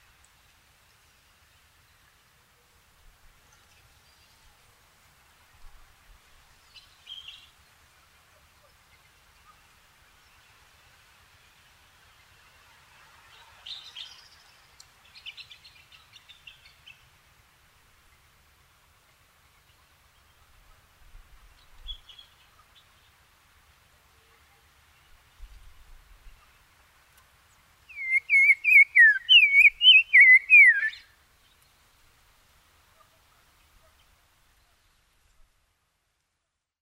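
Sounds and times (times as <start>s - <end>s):
black-crowned tchagra calling: 27.9s - 31.0s.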